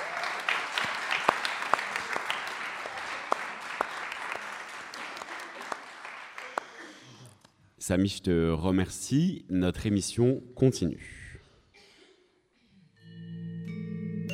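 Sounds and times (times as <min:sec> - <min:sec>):
audience applause: 0:00.0 - 0:07.4
speech: 0:07.9 - 0:11.2.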